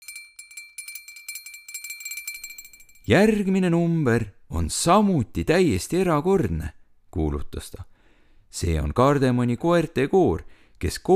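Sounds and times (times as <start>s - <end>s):
small bell ringing: 0.0s - 3.4s
speech: 3.1s - 7.9s, 8.5s - 11.1s.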